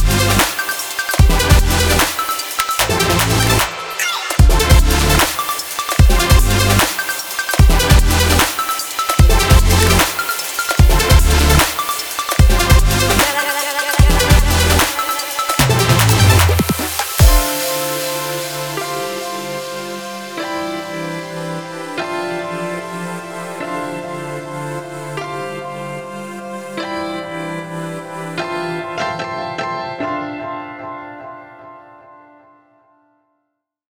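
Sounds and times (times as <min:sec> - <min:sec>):
future bass music: 0:00.0 - 0:22.0.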